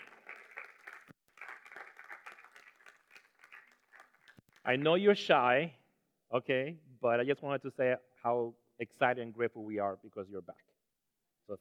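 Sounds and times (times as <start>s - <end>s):
crowd applause: 0.0s - 4.4s
speech: 4.7s - 10.7s.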